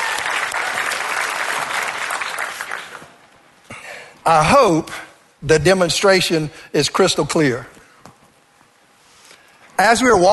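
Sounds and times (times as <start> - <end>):
audience clapping: 0.0 - 3.2
speech: 4.2 - 7.8, 9.8 - 10.3.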